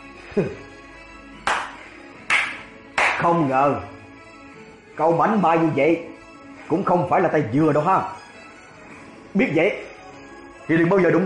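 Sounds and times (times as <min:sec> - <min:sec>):
speech: 0:00.4 - 0:00.6, 0:03.2 - 0:04.0, 0:05.0 - 0:06.1, 0:06.7 - 0:08.2, 0:09.3 - 0:09.9, 0:10.7 - 0:11.2
hand claps: 0:01.4 - 0:03.4.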